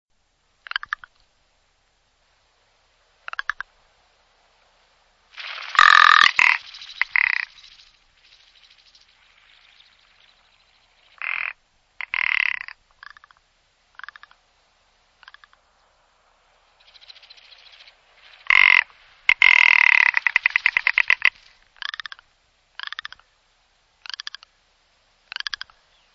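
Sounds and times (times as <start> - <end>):
rock ptarmigan rattling song: 0.6 - 1.2, 3.2 - 3.8, 5.3 - 13.4, 14.0 - 14.4, 15.2 - 15.7, 16.8 - 23.3, 24.0 - 24.5, 25.2 - 25.9.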